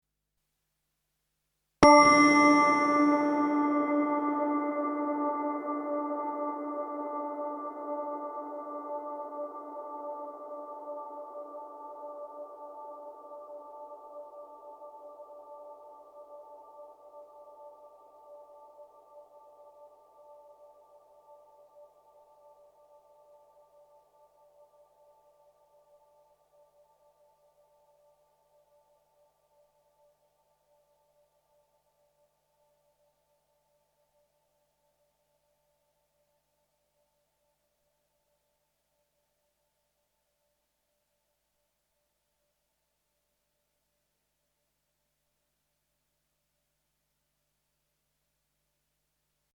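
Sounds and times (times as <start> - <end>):
digital synth through Strymon Big Sky 20-second hall reverb: 1.8 - 13.4.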